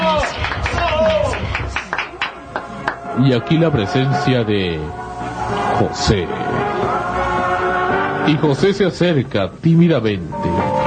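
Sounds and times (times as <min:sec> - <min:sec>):
audience applause: 0:00.0 - 0:03.1
speech: 0:03.2 - 0:07.0, 0:08.2 - 0:10.6.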